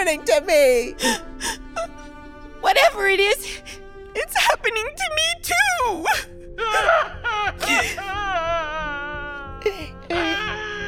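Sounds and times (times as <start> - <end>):
speech: 0.0 - 2.0, 2.6 - 8.4
person sobbing loudly: 6.1 - 8.5, 9.4 - 10.8.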